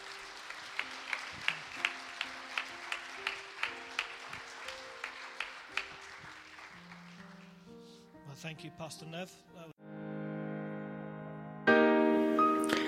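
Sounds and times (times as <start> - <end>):
crowd applause: 0.0 - 7.7
soft sustained keyboard melody: 1.4 - 12.8
speech: 8.4 - 9.7.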